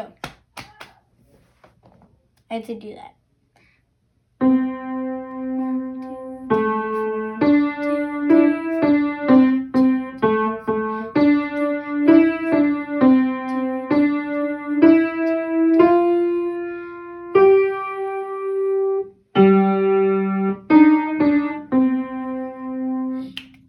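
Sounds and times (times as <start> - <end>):
home recorded jazz walk: 4.4 - 23.3.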